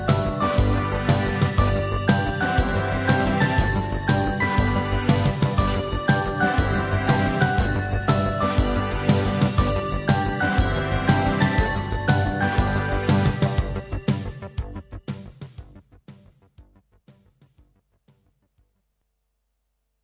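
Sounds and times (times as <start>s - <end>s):
fanfare: 0.0s - 14.2s.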